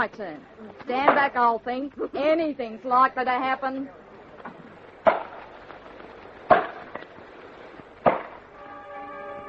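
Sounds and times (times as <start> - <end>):
speech: 0.0 - 4.6
axe chopping wood: 5.0 - 5.4, 6.5 - 7.0, 8.0 - 8.4.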